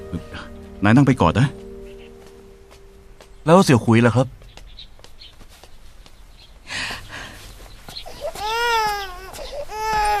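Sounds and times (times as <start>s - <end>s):
adult speaking: 0.1s - 1.6s
speech: 0.1s - 1.6s, 3.4s - 4.4s
infant crying: 8.0s - 10.1s.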